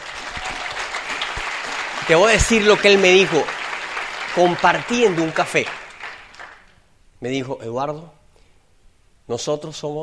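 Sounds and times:
crowd applause: 0.0s - 6.8s
speech: 2.1s - 3.6s, 4.4s - 5.8s, 7.2s - 8.2s, 9.3s - 10.0s.

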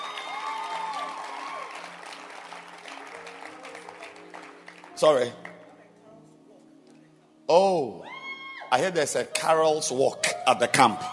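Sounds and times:
people clapping hands: 0.0s - 5.6s
speech: 5.0s - 5.5s, 7.5s - 8.1s, 8.7s - 11.1s.

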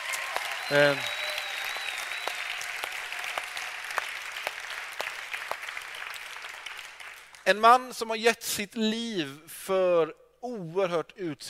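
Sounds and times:
applause: 0.0s - 7.6s
speech: 0.7s - 1.1s, 7.5s - 11.4s.

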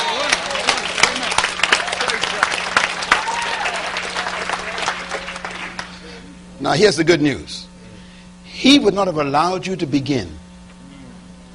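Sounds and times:
scattered voices and cheers: 0.0s - 5.3s
audience applause: 0.0s - 6.0s
speech: 6.6s - 7.6s, 8.6s - 10.4s.

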